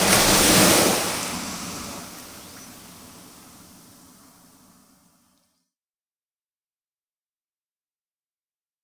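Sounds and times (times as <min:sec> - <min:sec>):
sea backwash: 0:00.0 - 0:05.0.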